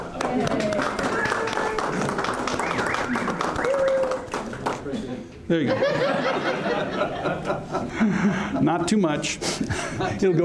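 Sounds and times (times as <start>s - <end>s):
audience applauding: 0.0s - 4.9s
speech: 0.4s - 0.7s, 5.5s - 10.4s
laughter: 4.9s - 10.4s.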